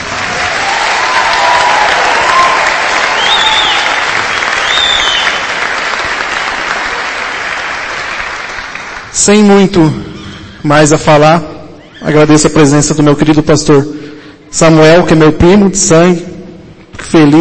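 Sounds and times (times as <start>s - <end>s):
audience applause: 0.0s - 9.1s
faint voices and whoops: 0.2s - 5.4s
speech: 9.3s - 16.3s, 17.1s - 17.4s.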